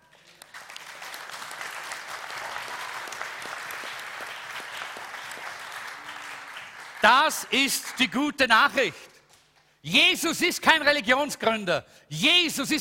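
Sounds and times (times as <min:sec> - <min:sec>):
audience applause: 0:00.0 - 0:08.4
speech: 0:07.0 - 0:09.1, 0:09.8 - 0:12.7.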